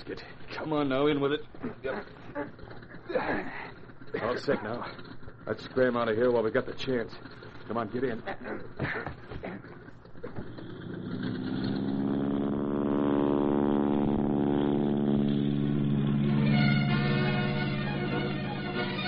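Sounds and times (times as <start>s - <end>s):
speech: 0.1s - 9.7s
airplane engine sputtering and roaring for takeoff: 1.4s - 5.7s, 6.4s - 19.0s.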